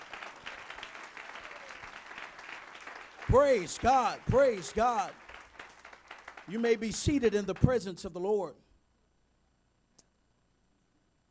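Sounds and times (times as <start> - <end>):
people clapping their hands: 0.0 - 8.4
speech: 3.3 - 5.2, 6.5 - 8.6.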